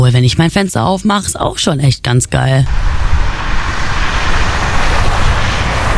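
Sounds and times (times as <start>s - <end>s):
speech: 0.1s - 3.1s
street traffic noise through open window: 2.7s - 5.9s.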